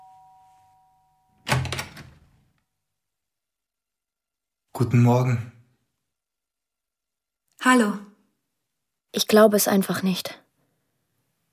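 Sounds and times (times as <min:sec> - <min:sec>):
doorbell chime: 0:00.0 - 0:01.5
speech: 0:04.8 - 0:05.5, 0:07.6 - 0:08.1, 0:09.2 - 0:10.4.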